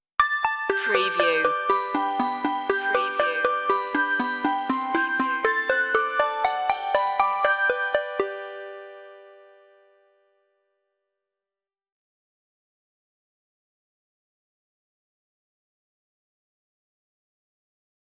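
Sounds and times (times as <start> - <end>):
synthified Christmas stinger intro: 0.2 - 10.0.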